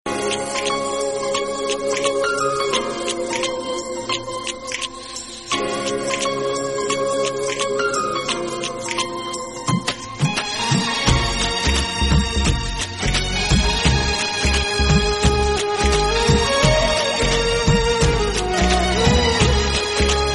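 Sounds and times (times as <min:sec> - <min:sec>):
harmonium music cover: 0:00.1 - 0:20.3.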